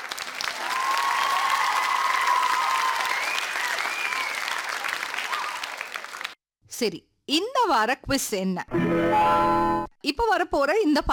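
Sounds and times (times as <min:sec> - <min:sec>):
loud applause: 0:00.0 - 0:06.4
speech: 0:06.8 - 0:11.1.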